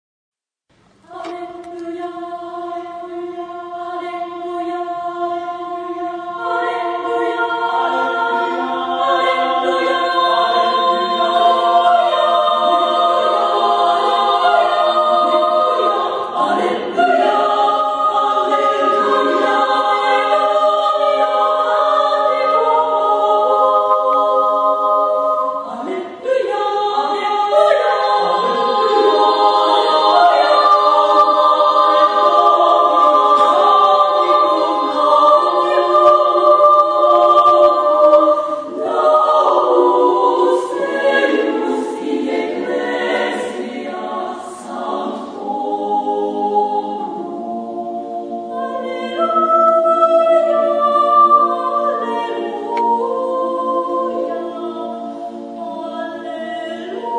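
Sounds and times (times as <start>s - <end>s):
chorus singing: 1.0s - 57.1s.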